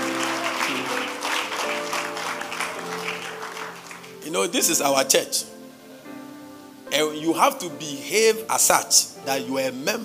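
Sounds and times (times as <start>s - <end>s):
audience clapping in praise: 0.0s - 4.3s
speech: 4.3s - 5.5s, 6.9s - 10.0s.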